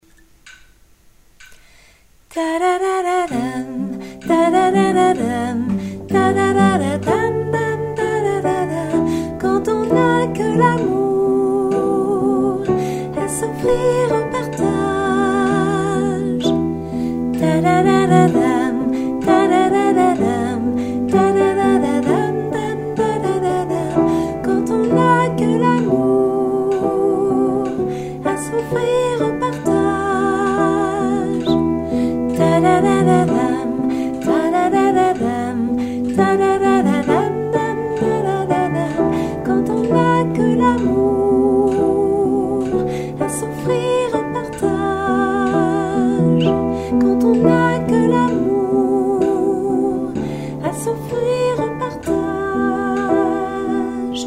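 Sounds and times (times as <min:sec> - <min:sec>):
soprano singing: 0:02.3 - 0:54.2.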